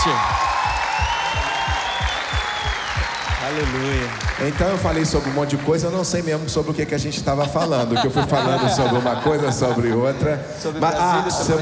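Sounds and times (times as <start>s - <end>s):
speech: 0.0s - 0.4s, 3.4s - 11.6s
audience applause: 0.0s - 6.2s
low rhythmic thumping: 0.0s - 9.6s
laughter: 7.1s - 11.6s.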